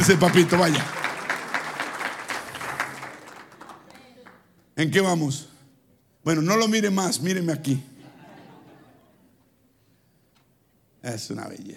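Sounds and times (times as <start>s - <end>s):
speech: 0.0s - 1.0s, 4.8s - 5.5s, 6.2s - 7.9s, 11.0s - 11.7s
audience applause for a man singled out from the crowd: 0.0s - 4.4s
laughter: 7.9s - 9.4s.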